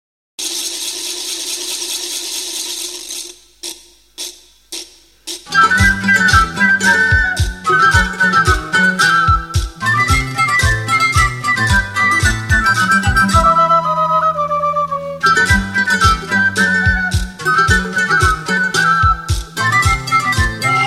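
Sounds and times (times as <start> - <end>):
Morenada folk dance music: 0.4 - 20.8.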